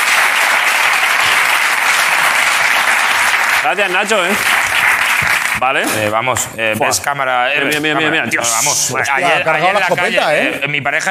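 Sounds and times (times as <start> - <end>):
audience applause: 0.0 - 5.8
speech: 3.6 - 4.5, 5.6 - 11.0.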